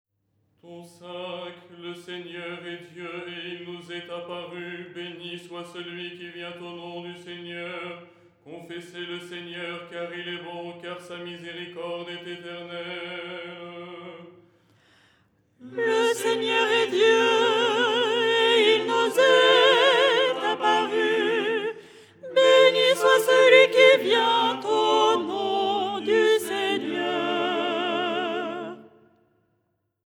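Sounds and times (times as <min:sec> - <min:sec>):
soprano singing: 0:15.6 - 0:29.0.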